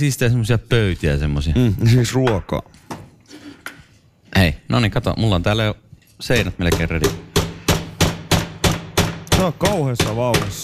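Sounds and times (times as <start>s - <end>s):
speech: 0.0s - 2.8s, 4.4s - 7.3s, 9.4s - 10.6s
hammering nails while building a birdhouse: 6.4s - 10.6s.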